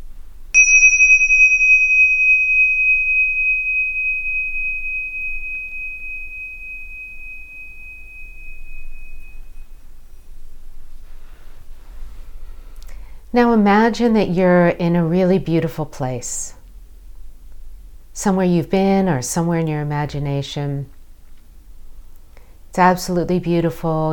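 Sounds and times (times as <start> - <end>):
meditation bell ringing: 0.6 - 10.2
speech: 13.3 - 16.6, 18.2 - 20.9, 22.8 - 24.1.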